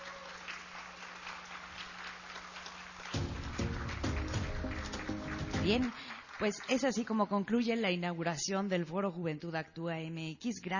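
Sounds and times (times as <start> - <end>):
audience applause: 0.0 - 7.2
speech: 5.6 - 10.7.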